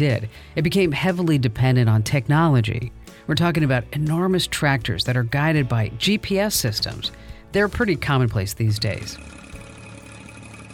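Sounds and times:
speech: 0.0s - 9.4s
engine of a fixed-wing agricultural drone over an Idaho farm: 9.2s - 10.7s.

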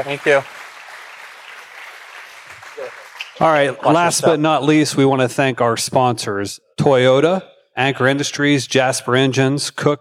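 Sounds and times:
speech: 0.0s - 0.6s, 3.4s - 9.9s
crowd clapping: 0.0s - 4.2s.

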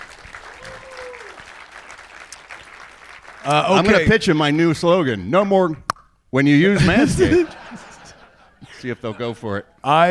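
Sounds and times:
live audience applauding the sponsor Manscaped: 0.0s - 4.1s
speech: 3.4s - 7.6s, 8.8s - 10.0s
laughter: 6.7s - 10.0s.

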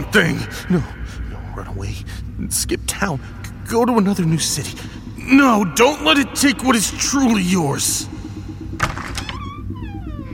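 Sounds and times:
speech: 0.1s - 8.1s
door opening: 8.8s - 10.3s.

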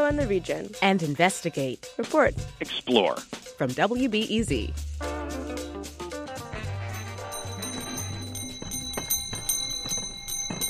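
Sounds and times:
speech: 0.1s - 5.0s
ice cream cart bells ringing: 7.0s - 10.6s.

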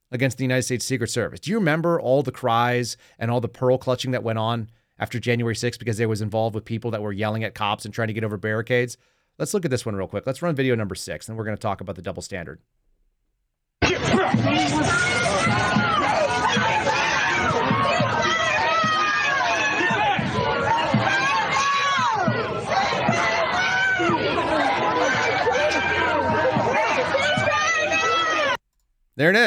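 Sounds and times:
speech: 0.1s - 12.8s, 13.8s - 16.8s, 29.2s - 29.4s
large protest crowd screaming and shouting: 13.8s - 28.6s.

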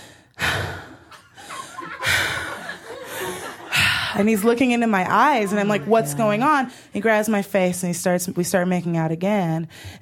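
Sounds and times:
person imitating heavy breathing: 0.0s - 4.2s
laughter: 1.1s - 6.7s
speech: 4.2s - 9.9s.

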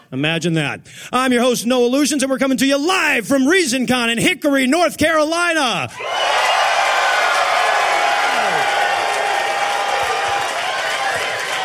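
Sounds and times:
speech: 0.1s - 6.6s
live convention audience cheering and applauding: 6.0s - 11.6s.

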